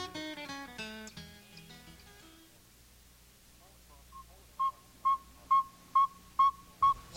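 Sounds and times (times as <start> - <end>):
northern saw-whet owl hooting call: 3.6 - 7.0.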